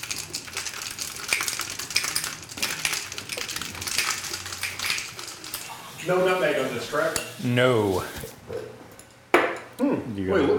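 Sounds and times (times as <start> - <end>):
carbonated hard cider drink being shaken: 0.0 - 5.8
speech: 6.0 - 8.3, 10.2 - 10.5.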